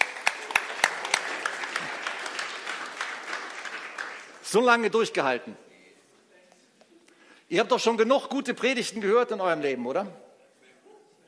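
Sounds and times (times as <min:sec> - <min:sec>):
audience applause: 0:00.0 - 0:04.7
speech: 0:04.5 - 0:05.6, 0:07.5 - 0:10.2.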